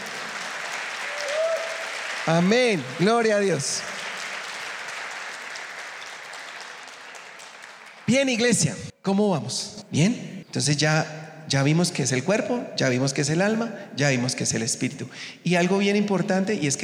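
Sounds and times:
audience applauding: 0.0s - 8.6s
speech: 2.3s - 3.9s, 8.1s - 16.8s.

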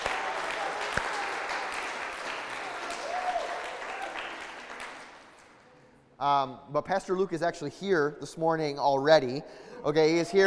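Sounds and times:
audience clapping: 0.0s - 6.0s
speech: 6.2s - 10.4s.

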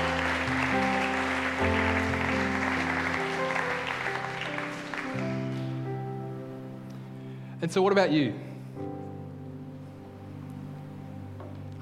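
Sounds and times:
round of applause: 0.0s - 5.8s
speech: 7.6s - 8.5s.

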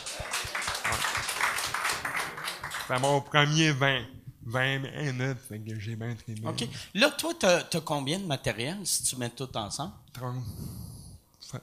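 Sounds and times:
audience applause: 0.0s - 3.2s
speech: 2.9s - 11.6s.

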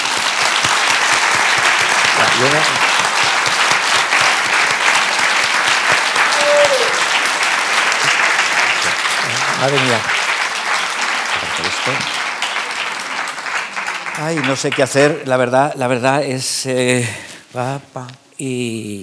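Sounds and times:
audience applause: 0.0s - 15.4s
speech: 2.4s - 2.8s, 9.6s - 10.2s, 11.9s - 12.2s, 14.2s - 19.0s.

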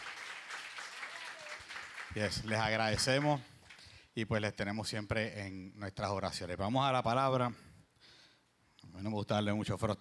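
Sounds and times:
audience applause: 0.0s - 3.3s
speech: 2.1s - 3.5s, 4.2s - 7.7s, 8.9s - 9.9s.

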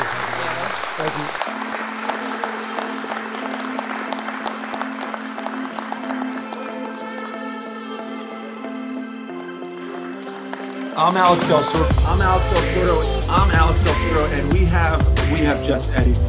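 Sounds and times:
audience applause: 0.0s - 7.6s, 8.6s - 12.9s
speech: 1.1s - 1.4s, 11.0s - 16.2s.

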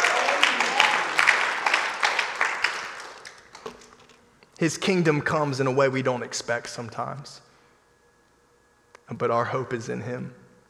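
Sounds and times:
audience cheering and clapping: 0.0s - 4.0s
speech: 4.6s - 7.5s, 9.1s - 10.4s.

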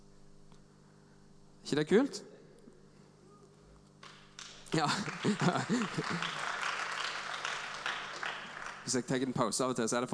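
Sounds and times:
speech: 1.7s - 2.3s, 4.7s - 6.4s, 8.9s - 10.1s
audience clapping: 4.0s - 9.5s
laughter: 4.8s - 6.7s.

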